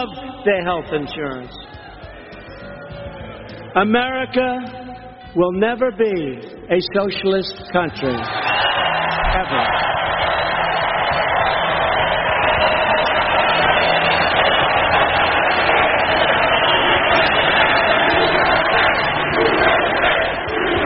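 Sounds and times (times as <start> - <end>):
speech: 0.0 - 1.8, 3.7 - 8.4, 9.3 - 10.0
rally crowd cheering: 0.0 - 4.0, 7.6 - 20.8.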